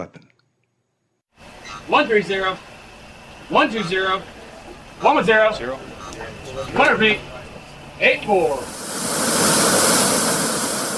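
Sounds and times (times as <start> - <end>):
speech: 0.0 - 0.2, 1.9 - 2.7, 3.5 - 4.3, 5.0 - 7.4, 8.0 - 8.8
USS Kentucky submarine surfacing through ocean water off Hawaii: 8.1 - 10.9.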